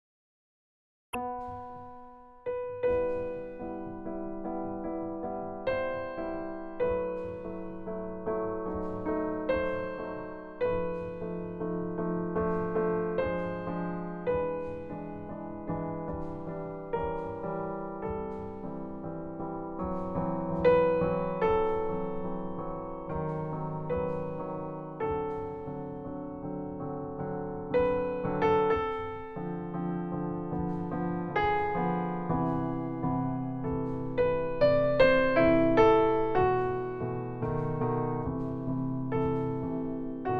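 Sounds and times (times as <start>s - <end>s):
piano prelude in E minor on a Bechstein piano: 1.2s - 40.3s.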